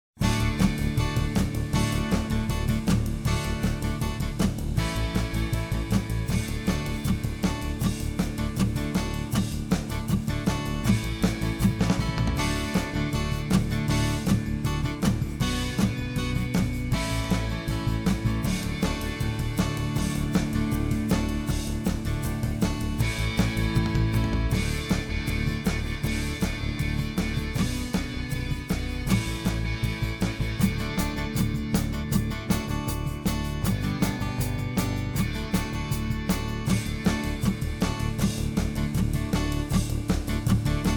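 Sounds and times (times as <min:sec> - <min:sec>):
exciting classic rock music: 0:00.2 - 0:40.9.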